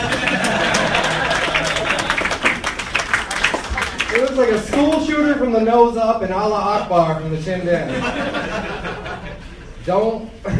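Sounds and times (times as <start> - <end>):
laughter: 0.0 - 2.7, 7.7 - 9.9
audience applause for a comedian: 0.0 - 5.0
speech: 4.4 - 10.5.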